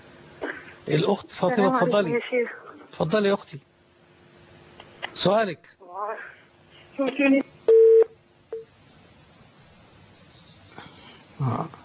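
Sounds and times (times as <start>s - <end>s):
speech: 0.9s - 3.7s, 5.2s - 6.4s, 7.0s - 7.4s, 11.4s - 11.8s
telephone tones on a call to Algeria failing to connect: 7.7s - 8.1s.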